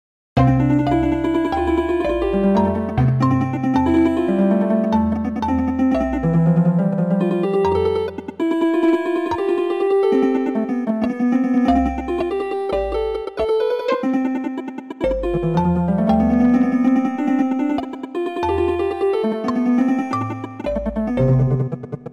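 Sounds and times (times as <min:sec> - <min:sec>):
four against five polyrhythm: 0:00.4 - 0:22.1.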